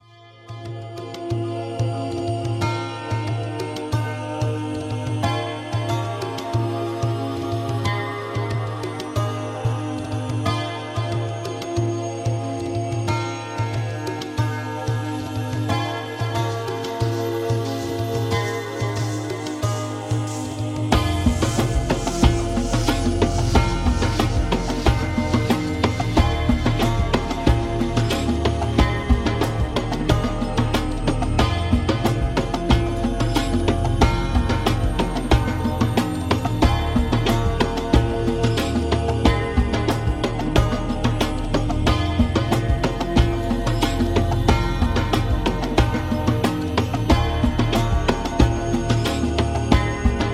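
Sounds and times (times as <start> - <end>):
oriental music: 0.0 - 50.3.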